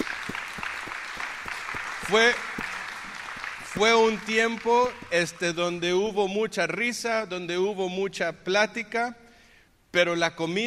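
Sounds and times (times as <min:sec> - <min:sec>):
audience applause: 0:00.0 - 0:05.4
speech: 0:02.1 - 0:02.5, 0:03.8 - 0:09.2, 0:10.0 - 0:10.6.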